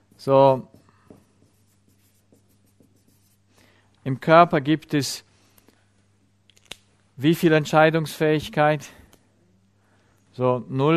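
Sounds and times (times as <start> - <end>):
pen scratching on paper drawing a sketch: 0.0 - 3.4
speech: 0.2 - 0.8, 4.0 - 5.3, 7.2 - 9.0, 10.4 - 10.9.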